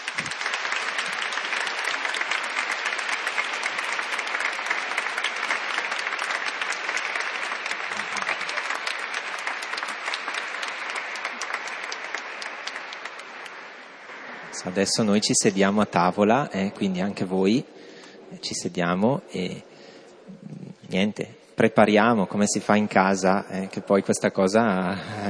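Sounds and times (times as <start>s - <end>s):
audience applause: 0.0s - 15.3s
speech: 14.6s - 17.7s, 18.4s - 19.7s, 20.9s - 25.2s.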